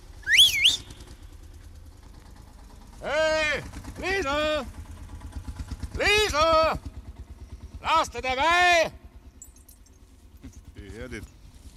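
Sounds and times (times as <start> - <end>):
low hum: 0.0 - 11.7
person giving a calling whistle to summon a Bulldog tractor driver: 0.2 - 1.1
speech: 7.8 - 9.0, 11.0 - 11.3.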